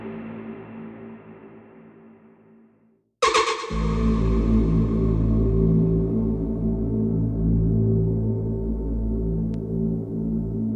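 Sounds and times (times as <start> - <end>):
drone in A minor: 3.2 - 10.6.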